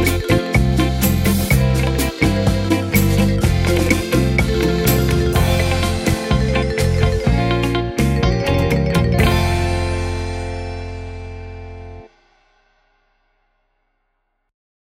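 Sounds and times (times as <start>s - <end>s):
60s style rumba played with drum brushes: 0.0s - 11.0s.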